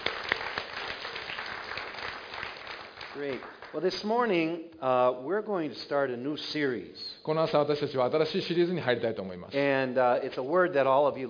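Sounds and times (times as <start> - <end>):
audience clapping: 0.0 - 4.3
speech: 3.2 - 11.2.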